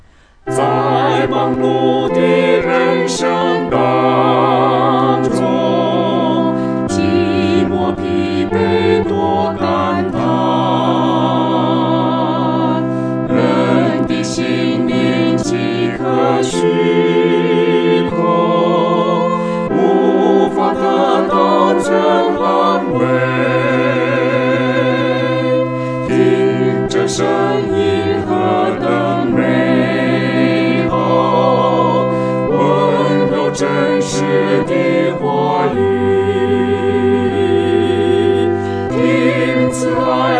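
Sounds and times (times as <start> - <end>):
four-part choir singing: 0.5 - 40.3.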